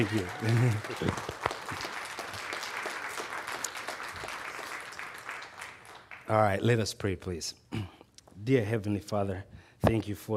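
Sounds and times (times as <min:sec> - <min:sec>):
speech: 0:00.0 - 0:01.4, 0:06.3 - 0:10.3
audience clapping: 0:00.0 - 0:06.7.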